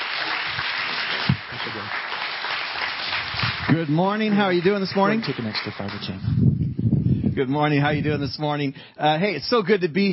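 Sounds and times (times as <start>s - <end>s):
church congregation applauding to welcome a guest speaker: 0.0s - 6.2s
speech: 1.7s - 2.0s, 3.7s - 6.6s, 7.4s - 10.1s.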